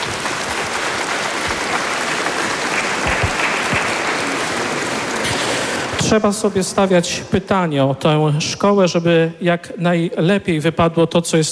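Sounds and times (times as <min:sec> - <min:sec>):
loud applause: 0:00.0 - 0:07.0
speech: 0:06.1 - 0:11.5.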